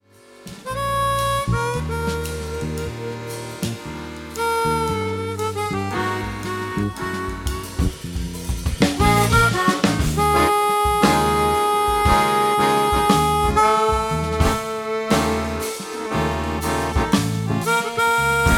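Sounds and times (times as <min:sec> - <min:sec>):
punk jazz music: 0:00.0 - 0:18.5.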